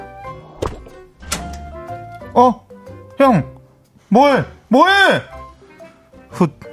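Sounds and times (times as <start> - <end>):
balcony door slammed shut and locked: 1.0 - 1.8
speech: 2.4 - 2.6, 3.2 - 3.5, 4.1 - 5.3, 6.4 - 6.6.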